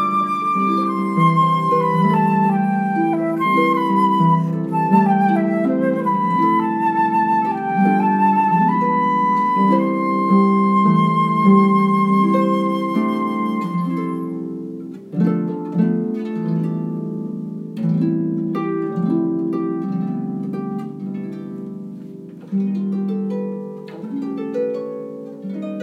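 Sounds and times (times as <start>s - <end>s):
flute: 0.0s - 14.9s
harp: 0.0s - 25.8s.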